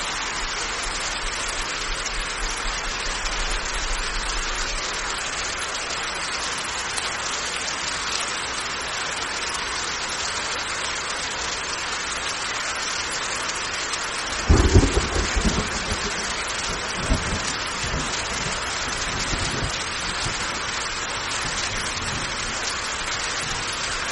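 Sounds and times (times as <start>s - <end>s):
heavy rain pouring in a forest: 0.0s - 24.1s
low rumble of thunder: 14.4s - 22.6s.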